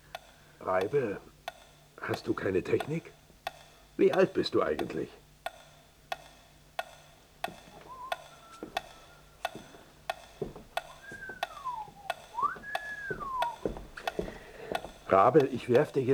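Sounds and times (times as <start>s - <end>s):
clock ticking: 0.0s - 16.1s
speech: 0.6s - 1.3s, 2.0s - 3.2s, 4.0s - 5.2s, 15.2s - 16.1s
wavering whistled tune: 7.6s - 14.6s.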